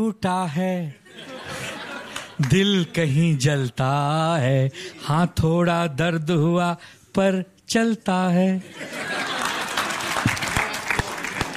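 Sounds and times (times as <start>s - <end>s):
speech: 0.0s - 1.3s, 2.4s - 9.2s
laughter: 1.0s - 3.1s, 8.6s - 11.5s
applause: 9.1s - 11.5s.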